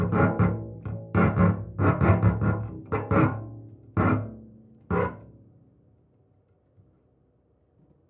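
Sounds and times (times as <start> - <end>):
contemporary double bass playing: 0.0 - 5.5.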